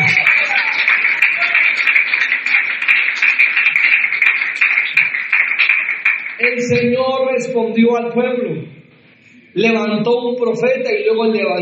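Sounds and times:
audience applause: 0:00.0 - 0:06.7
speech: 0:06.5 - 0:08.8, 0:09.5 - 0:11.6.

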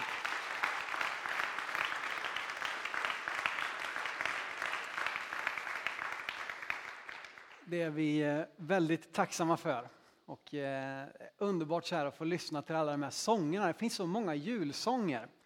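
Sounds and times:
warm audience applause: 0:00.0 - 0:07.7
speech: 0:07.7 - 0:15.4.

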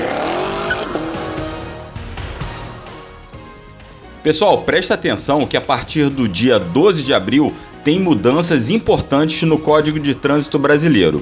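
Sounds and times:
tire squeal: 0:00.0 - 0:01.6
car engine accelerating: 0:00.0 - 0:01.9
speech: 0:04.2 - 0:11.1.

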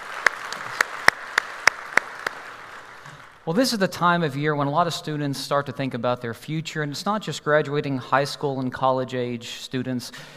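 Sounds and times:
sparse applause at a church service: 0:00.0 - 0:03.5
speech: 0:03.4 - 0:10.3.

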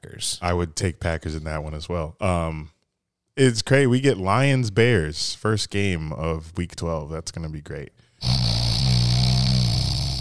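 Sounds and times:
speech: 0:00.0 - 0:02.8, 0:03.4 - 0:08.7
snoring: 0:08.2 - 0:10.1.

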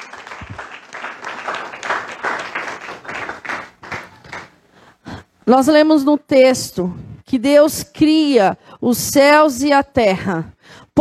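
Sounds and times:
audience applauding: 0:00.0 - 0:04.6
speech: 0:05.5 - 0:11.0.

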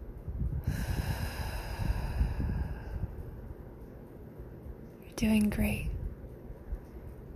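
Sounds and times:
deep slow breathing: 0:00.2 - 0:04.1
speech: 0:05.2 - 0:05.9.

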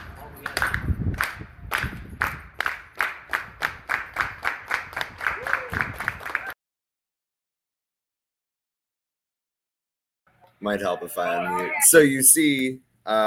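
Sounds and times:
audience clapping: 0:00.4 - 0:06.6
speech: 0:10.6 - 0:13.2.

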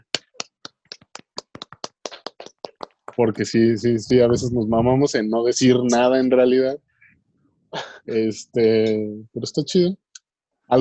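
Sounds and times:
hand clapping: 0:00.0 - 0:03.2
speech: 0:03.2 - 0:06.9, 0:07.7 - 0:10.0.

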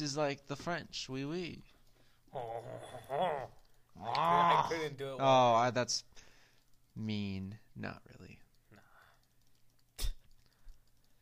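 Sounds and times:
speech: 0:00.0 - 0:01.7, 0:02.3 - 0:06.2, 0:07.0 - 0:08.4
computer mouse clicking: 0:06.5 - 0:07.0, 0:08.5 - 0:11.2.

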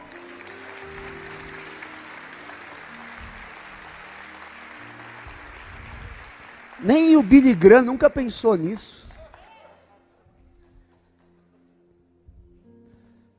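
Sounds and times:
audience applause: 0:00.0 - 0:09.8
speech: 0:06.8 - 0:09.0.

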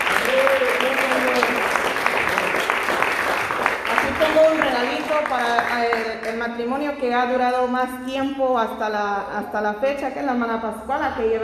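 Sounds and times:
audience applause: 0:00.0 - 0:06.4
speech: 0:05.2 - 0:11.4.

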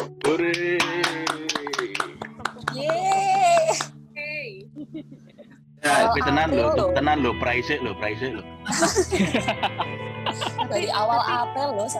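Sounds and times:
audience clapping hands: 0:00.0 - 0:04.0
laughter: 0:04.8 - 0:06.5, 0:08.7 - 0:11.5
speech: 0:06.1 - 0:09.9, 0:10.7 - 0:11.9.

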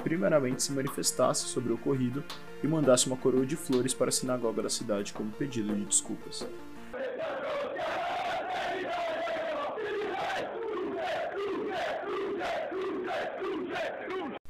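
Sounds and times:
speech: 0:00.1 - 0:06.8
stadium crowd chanting: 0:06.9 - 0:14.4.

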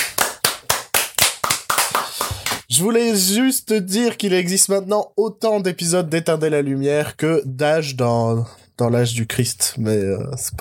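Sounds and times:
people clapping hands: 0:00.0 - 0:02.7
speech: 0:02.7 - 0:10.5.

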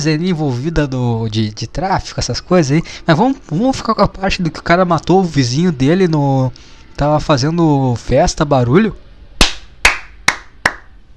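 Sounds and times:
speech: 0:00.0 - 0:09.0
sharp hand claps: 0:09.4 - 0:10.9.

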